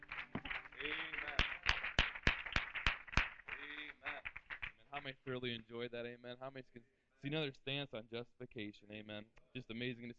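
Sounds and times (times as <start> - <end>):
applause: 0.0 - 5.2
speech: 5.0 - 10.1.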